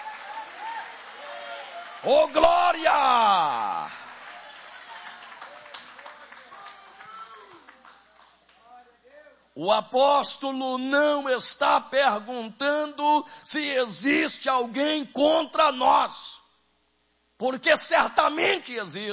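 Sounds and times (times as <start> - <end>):
audience clapping hands: 0.0 - 8.8
speech: 2.0 - 4.0, 9.6 - 16.4, 17.4 - 19.1.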